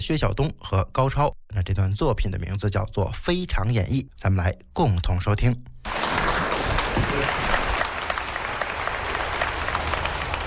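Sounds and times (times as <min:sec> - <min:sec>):
speech: 0:00.0 - 0:06.2, 0:07.0 - 0:07.6
audience applause: 0:05.9 - 0:10.4.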